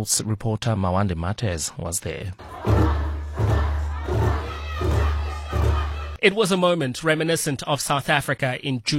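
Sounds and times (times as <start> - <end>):
speech: 0.0 - 3.1, 6.2 - 8.9
enthusiastic crowd of Bafana Bafana supporters singing and cheering in Rosebank: 2.4 - 6.2.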